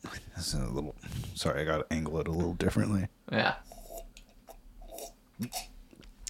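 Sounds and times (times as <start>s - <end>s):
speech: 0.4s - 3.7s, 5.4s - 5.7s
voice imitating slurping a drink: 4.8s - 5.8s
gulp: 5.4s - 5.8s.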